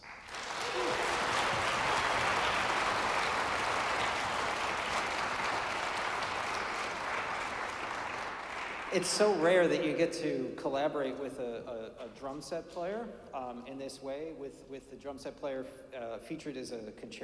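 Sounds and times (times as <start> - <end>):
audience applause for soloist: 0.0 - 9.4
speech: 8.9 - 17.2.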